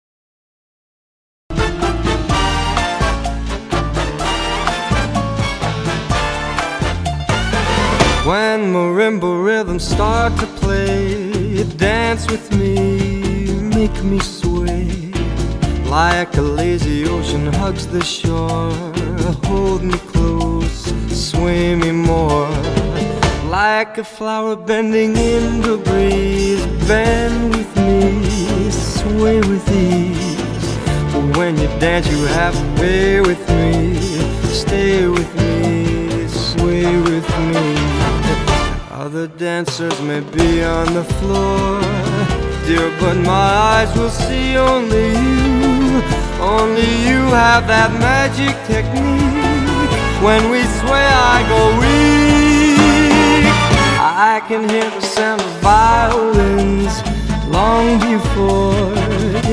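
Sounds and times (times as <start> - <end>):
cha cha music: 1.5 - 23.8, 25.0 - 59.5.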